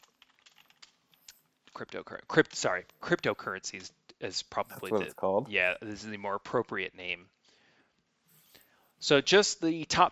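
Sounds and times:
typing a search query on a computer keyboard: 0:00.0 - 0:01.8
speech: 0:01.8 - 0:07.4, 0:09.0 - 0:10.0.

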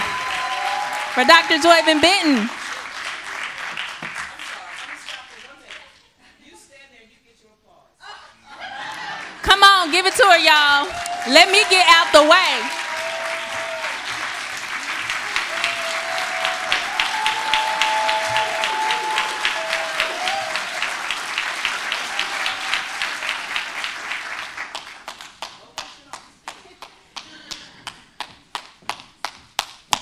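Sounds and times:
audience applause and clapping: 0:00.0 - 0:05.8, 0:08.6 - 0:25.7
speech: 0:01.2 - 0:02.6, 0:10.1 - 0:12.8
laughter: 0:08.0 - 0:10.7.

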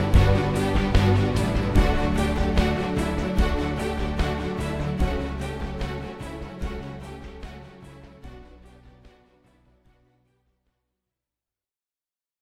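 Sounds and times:
corporate music: 0:00.0 - 0:09.7.

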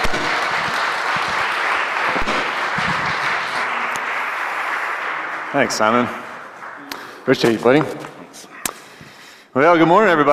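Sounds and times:
audience applause welcoming a speaker: 0:00.0 - 0:07.8
speech: 0:05.5 - 0:06.2, 0:07.2 - 0:08.0, 0:09.6 - 0:10.3.

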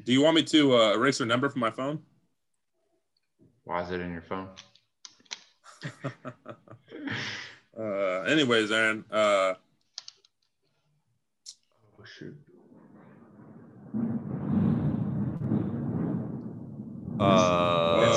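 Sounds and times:
speech: 0:00.0 - 0:02.1, 0:03.7 - 0:04.7, 0:05.8 - 0:09.7, 0:12.0 - 0:12.5, 0:17.2 - 0:18.1
thunder during a storm: 0:12.5 - 0:18.1.

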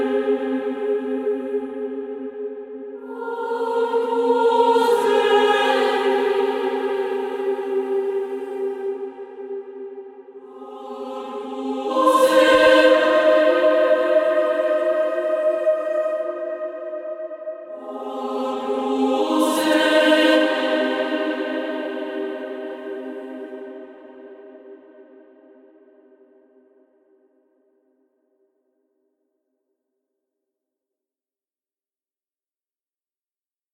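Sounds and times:
instrumental sacred music: 0:00.0 - 0:25.8.

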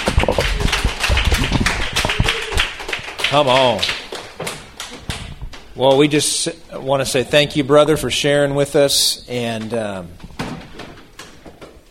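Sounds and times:
audience applause: 0:00.0 - 0:05.0
speech: 0:03.3 - 0:04.0, 0:05.8 - 0:10.3.

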